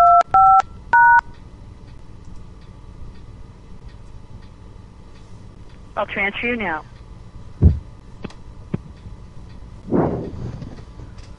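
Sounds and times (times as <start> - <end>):
telephone keypad tones dialing an extension on an automated phone system: 0.0 - 1.3
speech: 6.0 - 7.0.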